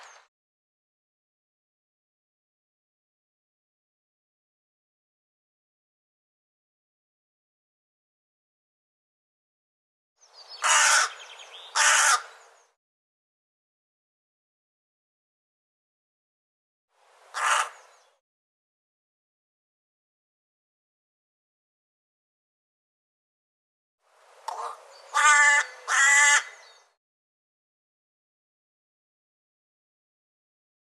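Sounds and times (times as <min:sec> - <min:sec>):
bird harsh caw-like calls: 0:10.3 - 0:12.8, 0:17.3 - 0:18.2, 0:24.5 - 0:27.0.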